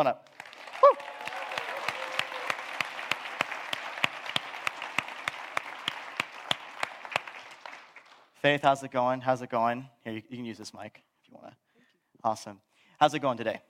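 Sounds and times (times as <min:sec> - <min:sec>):
speech: 0:00.0 - 0:01.0, 0:08.4 - 0:11.6, 0:12.2 - 0:13.6
crowd applause: 0:00.3 - 0:08.3
high whoop: 0:00.7 - 0:02.8.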